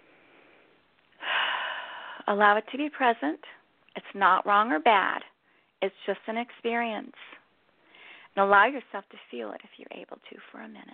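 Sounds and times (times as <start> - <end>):
deep breath during a guided exercise: 0.0 - 2.3, 7.8 - 8.3
speech: 2.3 - 7.4, 8.4 - 10.9.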